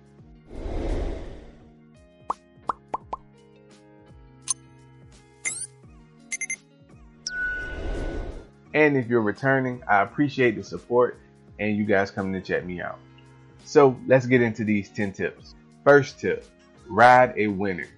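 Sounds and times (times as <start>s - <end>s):
soft whoosh: 0.5s - 1.6s
bright pops and clicks: 2.3s - 3.3s
notification bell dings: 6.3s - 6.6s
speech: 8.8s - 17.9s.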